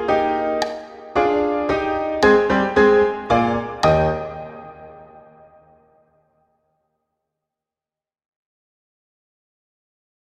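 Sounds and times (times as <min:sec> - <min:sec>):
pompous allegretto music: 0:00.0 - 0:05.6.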